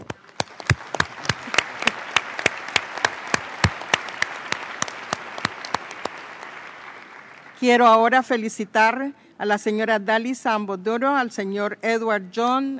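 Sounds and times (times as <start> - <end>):
audience applause: 0.0 - 7.8
speech: 7.6 - 12.7.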